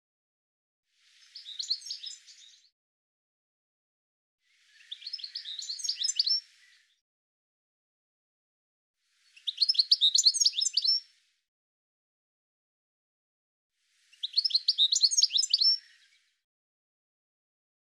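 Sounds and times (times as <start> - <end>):
bird song with rapid high twittering notes: 4.8 - 6.4, 9.4 - 11.0, 14.2 - 16.0.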